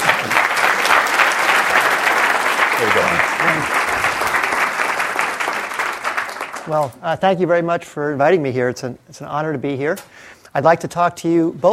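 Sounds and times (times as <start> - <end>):
audience applause welcoming speaker Bill Gross at a talk: 0.0 - 6.8
speech: 6.7 - 11.7.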